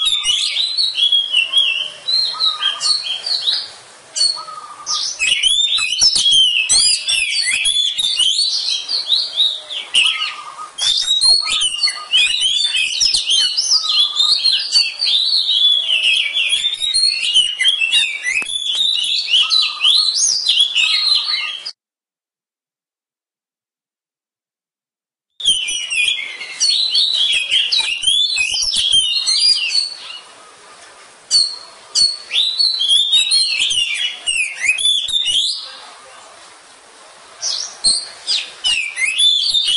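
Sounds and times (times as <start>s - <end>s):
Oriental magpie-robin song: 0.0s - 21.8s, 25.4s - 30.6s, 31.3s - 36.2s, 37.4s - 39.7s.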